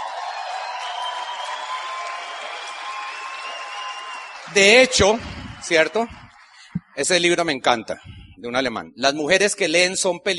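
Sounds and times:
audience applause: 0:00.0 - 0:07.8
speech: 0:04.5 - 0:06.2, 0:07.0 - 0:10.3.

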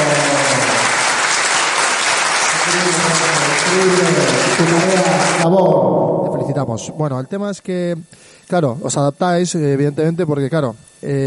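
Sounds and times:
audience applause: 0:00.0 - 0:05.6
speech: 0:03.8 - 0:11.2.

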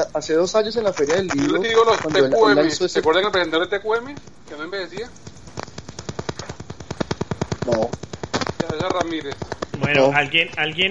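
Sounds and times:
speech: 0:00.0 - 0:05.3, 0:07.7 - 0:08.0, 0:08.8 - 0:10.9
gunshots fired outdoors: 0:04.9 - 0:10.9.

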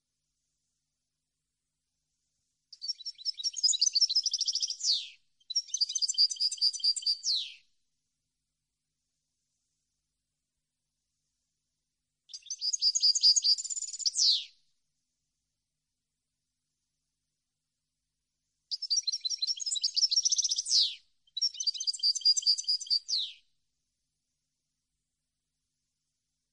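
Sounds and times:
European goldfinch twittering song: 0:02.8 - 0:07.6, 0:12.3 - 0:14.5, 0:18.7 - 0:23.4.

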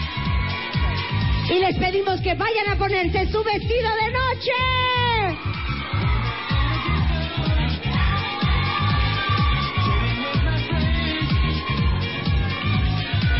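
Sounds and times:
audience applause: 0:00.0 - 0:01.5, 0:05.3 - 0:13.3
speech: 0:01.5 - 0:05.8.

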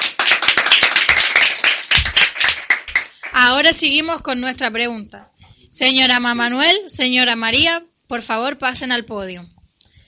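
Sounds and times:
audience applause for contestants: 0:00.0 - 0:03.4
speech: 0:03.4 - 0:09.6.

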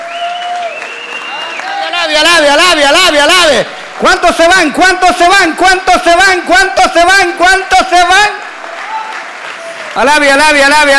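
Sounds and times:
audience clapping: 0:00.0 - 0:06.5, 0:07.1 - 0:10.9
speech: 0:02.0 - 0:08.4, 0:10.0 - 0:10.9.

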